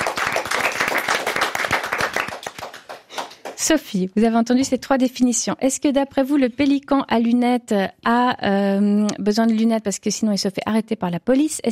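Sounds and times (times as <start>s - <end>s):
crowd applauding: 0.0s - 3.6s
speech: 3.6s - 11.7s.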